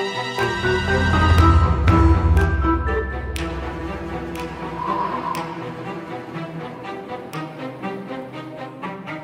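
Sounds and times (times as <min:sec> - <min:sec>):
login music: 0:00.6 - 0:06.6.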